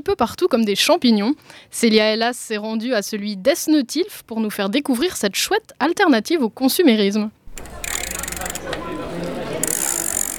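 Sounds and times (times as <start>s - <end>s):
speech: 0.0s - 7.7s
mechanical rattling: 7.5s - 9.0s, 9.6s - 10.3s
bicycle ratchet clicking during repair: 7.5s - 10.3s.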